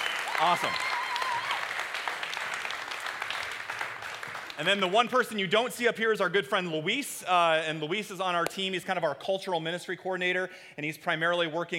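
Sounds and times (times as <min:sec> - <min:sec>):
audience applause: 0:00.0 - 0:04.9
speech: 0:00.4 - 0:01.0, 0:04.6 - 0:11.7.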